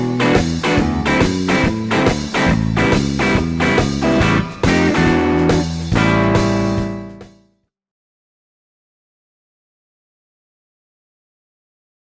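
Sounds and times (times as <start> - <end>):
rhythm guitar: 0.0 - 7.5.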